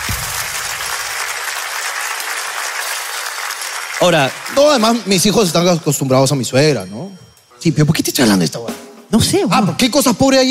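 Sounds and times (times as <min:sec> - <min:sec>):
crowd applause: 0:00.0 - 0:06.3
speech: 0:04.0 - 0:10.4.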